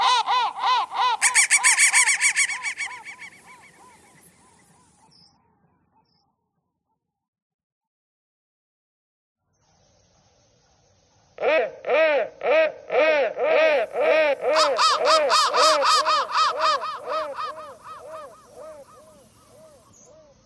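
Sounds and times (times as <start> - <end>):
crow calling: 0.0 - 4.2, 11.4 - 20.3.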